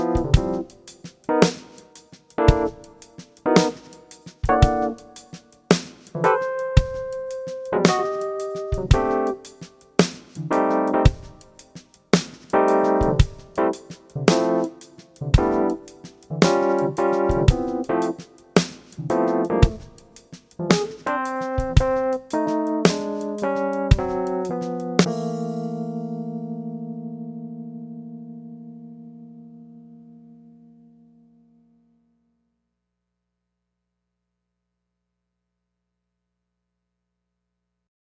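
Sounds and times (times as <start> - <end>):
blues shuffle backing track in C without bass: 0.0 - 26.3.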